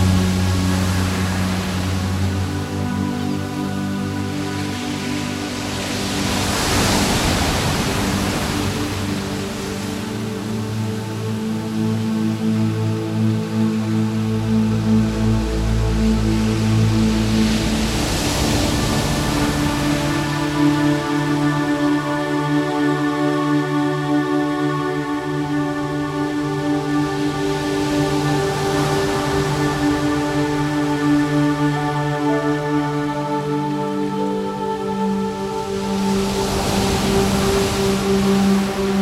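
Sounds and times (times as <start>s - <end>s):
ocean waves: 0.0s - 38.9s.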